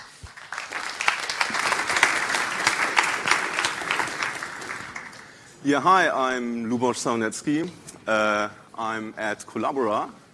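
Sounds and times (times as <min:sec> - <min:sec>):
audience applause: 0:00.0 - 0:05.5
speech: 0:05.6 - 0:10.2.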